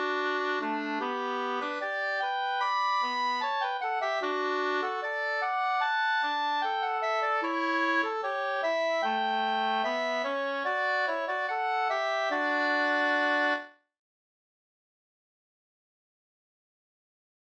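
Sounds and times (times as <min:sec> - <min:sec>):
wedding march music: 0:00.0 - 0:13.6.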